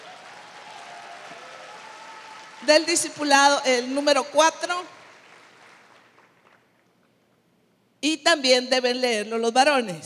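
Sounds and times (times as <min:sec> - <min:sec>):
small crowd applauding: 0:00.0 - 0:03.2, 0:04.6 - 0:07.1
speech: 0:02.6 - 0:05.0, 0:08.0 - 0:10.0.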